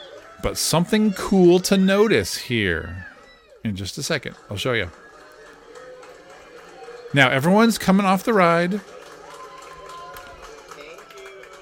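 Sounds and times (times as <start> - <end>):
crowd applauding after a ride: 0.0 - 11.5
speech: 0.4 - 5.0, 7.1 - 9.0.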